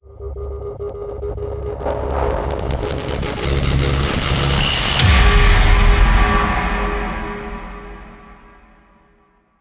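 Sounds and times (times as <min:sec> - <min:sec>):
rising tension build: 0:00.3 - 0:08.9
impact hit: 0:03.2 - 0:09.2.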